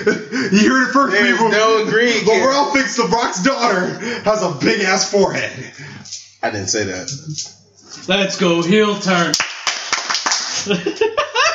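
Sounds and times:
laughter: 0:00.0 - 0:04.6, 0:10.5 - 0:11.5
speech: 0:00.0 - 0:09.4, 0:10.6 - 0:11.1
hand claps: 0:09.3 - 0:10.7.

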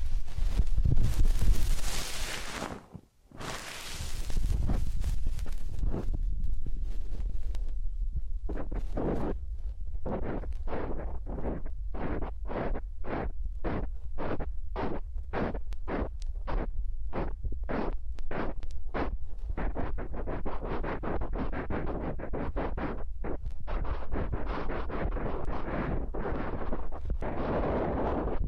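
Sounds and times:
massage strokes: 0:00.0 - 0:06.2
loud rushing and rubbing against the microphone: 0:00.0 - 0:28.4
constant low rumble: 0:04.0 - 0:10.1.

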